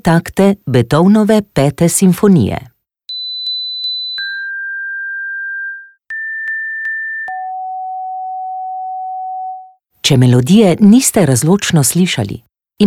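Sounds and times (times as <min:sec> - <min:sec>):
speech: 0:00.0 - 0:02.7, 0:10.1 - 0:12.8
hearing test sine tones at 500-4000 Hz: 0:03.1 - 0:09.8.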